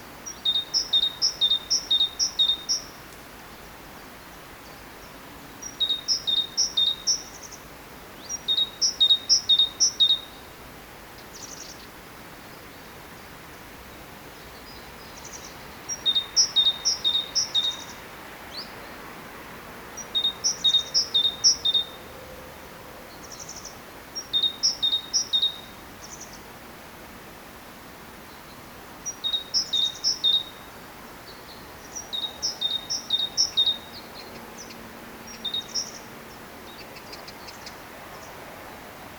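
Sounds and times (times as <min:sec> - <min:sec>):
faint hiss: 0:00.0 - 0:39.1
great tit singing: 0:00.2 - 0:03.0, 0:04.2 - 0:10.5, 0:14.4 - 0:18.8, 0:20.0 - 0:22.1, 0:23.1 - 0:26.4, 0:28.5 - 0:38.4.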